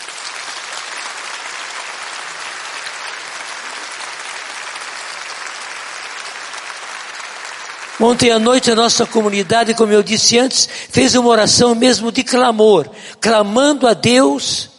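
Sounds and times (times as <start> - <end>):
audience applause: 0.0 - 10.1
speech: 8.0 - 14.7.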